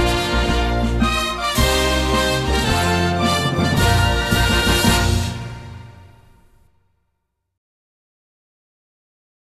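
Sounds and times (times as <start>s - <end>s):
instrumental anthem: 0.0s - 6.7s.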